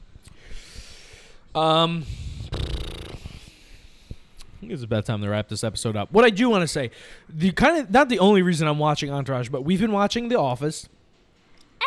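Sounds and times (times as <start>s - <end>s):
hiss: 0.0s - 11.8s
speech: 1.6s - 2.2s, 4.7s - 11.0s
person imitating snoring into the microphone: 2.0s - 3.6s.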